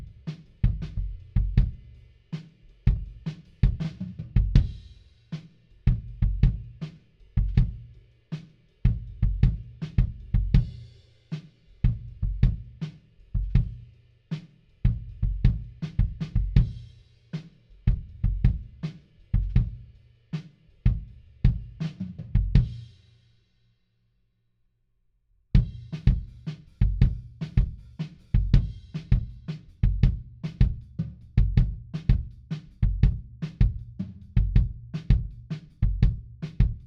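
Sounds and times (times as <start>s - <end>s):
kick drum at 160 BPM: 0.0s - 1.9s, 2.9s - 4.9s, 5.9s - 6.8s, 7.4s - 7.9s, 8.9s - 10.8s, 11.9s - 12.8s, 13.4s - 13.8s, 14.9s - 16.9s, 17.9s - 18.8s, 19.4s - 19.9s, 20.9s - 22.8s, 25.6s - 36.8s.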